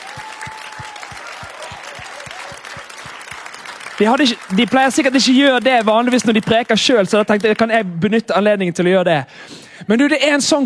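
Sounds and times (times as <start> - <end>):
audience applause: 0.0 - 7.7
speech: 4.0 - 10.6.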